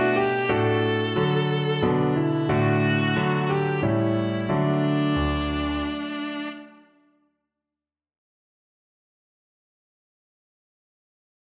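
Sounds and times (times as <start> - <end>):
viola melody: 0.0 - 7.0.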